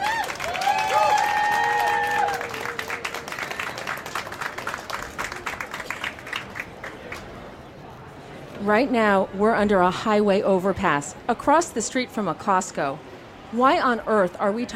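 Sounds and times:
cheering and whistles: 0.0 - 3.6
audience applause: 0.0 - 7.3
speech: 8.7 - 14.7.

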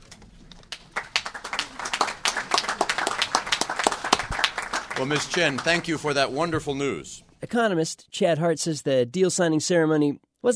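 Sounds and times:
audience applause: 0.7 - 6.5
speech: 5.0 - 10.5.

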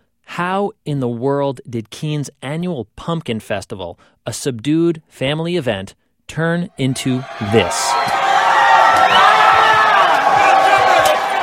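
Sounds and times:
speech: 0.4 - 8.2
crowd of thousands chanting and shouting: 6.7 - 11.4.

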